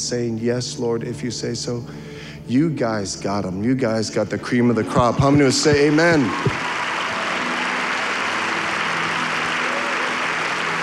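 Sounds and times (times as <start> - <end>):
speech: 0.1 - 6.7
audience clapping: 4.9 - 10.8.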